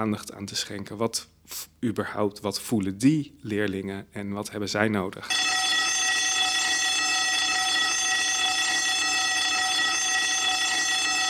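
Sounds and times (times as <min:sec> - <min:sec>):
speech: 0:00.0 - 0:05.5
electric school bell ringing: 0:05.3 - 0:11.2.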